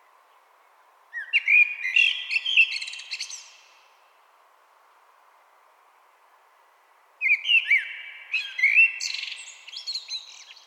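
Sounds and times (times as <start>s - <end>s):
common blackbird singing: 1.2s - 3.6s, 7.2s - 10.6s.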